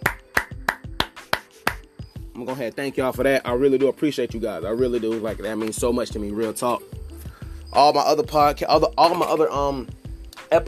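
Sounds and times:
hand claps: 0.0 - 1.9, 5.0 - 5.8
speech: 2.4 - 7.0, 7.7 - 10.6.

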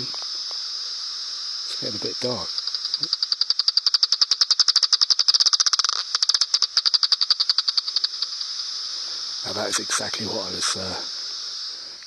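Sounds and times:
speech: 0.0 - 0.2, 1.8 - 3.2, 9.4 - 11.2
bat echolocation calls homing on moth: 2.2 - 8.2.

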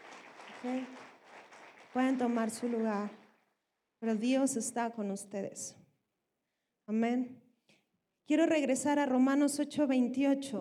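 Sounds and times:
audience applauding: 0.0 - 3.4
speech: 0.6 - 1.1, 2.0 - 3.2, 4.0 - 5.8, 6.9 - 7.4, 8.3 - 10.5.

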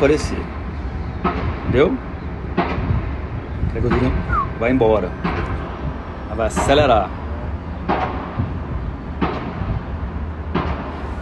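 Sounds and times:
speech: 0.0 - 0.6, 1.2 - 2.1, 3.7 - 5.6, 6.4 - 7.2
construction machinery rumble: 0.0 - 11.2
loud construction bangs: 2.5 - 11.2.

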